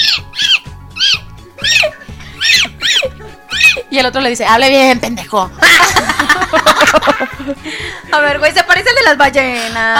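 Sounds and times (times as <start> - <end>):
voice imitating dolphin squeaks: 0.0 - 3.9
laughter: 1.6 - 3.9, 5.6 - 7.8
speech: 4.0 - 9.9.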